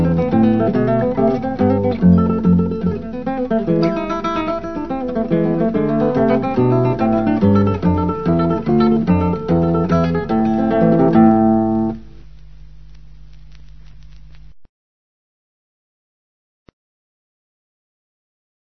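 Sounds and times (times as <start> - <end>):
romantic guitar music: 0.0 - 12.1.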